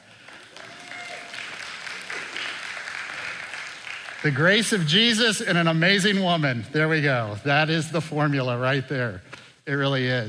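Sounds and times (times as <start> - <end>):
audience applause: 0.0 - 5.2
speech: 4.2 - 10.2.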